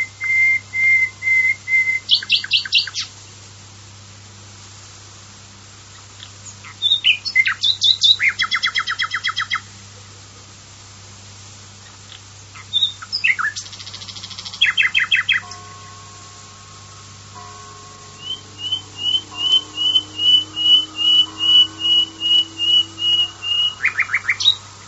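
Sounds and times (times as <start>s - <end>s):
common nightingale whistled song: 0.0s - 3.1s, 6.2s - 9.7s, 12.6s - 24.8s.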